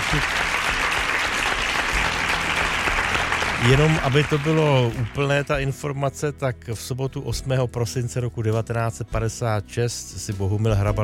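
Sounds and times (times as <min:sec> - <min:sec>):
audience applause: 0:00.0 - 0:05.5
speech: 0:00.1 - 0:00.5, 0:03.6 - 0:11.0.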